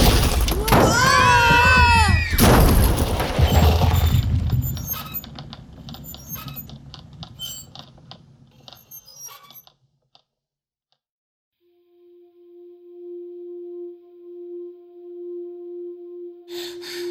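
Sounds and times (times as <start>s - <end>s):
lava bomb from an erupting volcano crashing down, audio drama effect: 0.0s - 6.2s.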